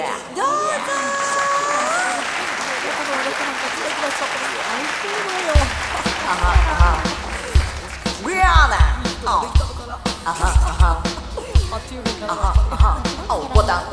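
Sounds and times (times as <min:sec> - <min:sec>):
laughter: 0:00.0 - 0:13.9
audience applause: 0:00.3 - 0:09.8.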